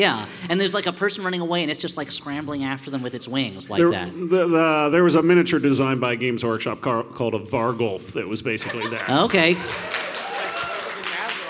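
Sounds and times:
speech: 0:00.0 - 0:10.0
laughter: 0:08.5 - 0:11.3
audience applause: 0:09.4 - 0:11.4.

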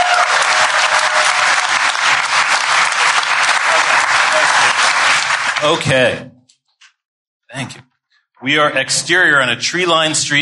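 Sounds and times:
audience applause: 0:00.0 - 0:06.0
speech: 0:05.6 - 0:06.4, 0:07.6 - 0:10.3.

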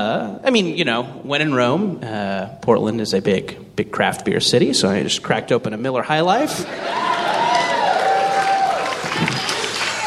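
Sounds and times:
speech: 0:00.0 - 0:07.2
live audience cheering and booing: 0:06.6 - 0:10.0
people yelling: 0:06.7 - 0:10.0.

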